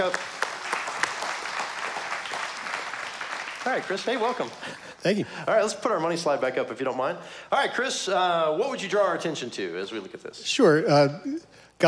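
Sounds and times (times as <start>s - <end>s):
speech: 0.0s - 0.3s, 3.6s - 11.8s
church congregation at a Sunday service clapping for their treasurer: 0.0s - 5.0s.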